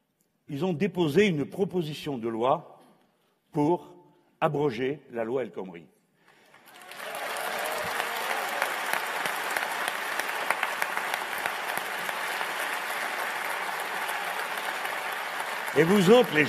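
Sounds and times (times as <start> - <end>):
speech: 0.5 - 2.7, 3.5 - 6.0, 15.8 - 16.4
audience applause: 6.4 - 16.4.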